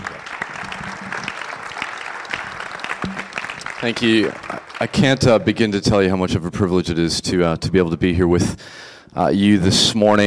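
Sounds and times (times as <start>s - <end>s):
church congregation applause welcoming a speaker: 0.0s - 5.8s
speech: 3.8s - 10.2s.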